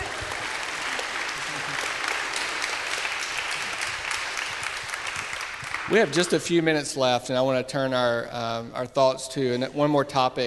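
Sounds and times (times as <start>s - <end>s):
room of people applauding: 0.0s - 6.9s
speech: 5.9s - 10.4s.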